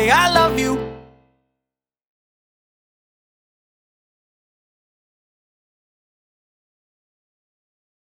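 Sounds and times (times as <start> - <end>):
128bpm a cappella vocals in B flat: 0.0 - 0.9.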